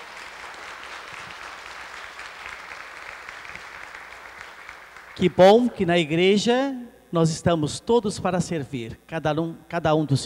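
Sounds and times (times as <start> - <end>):
audience applauding in church: 0.0 - 5.3
speech: 5.2 - 10.2.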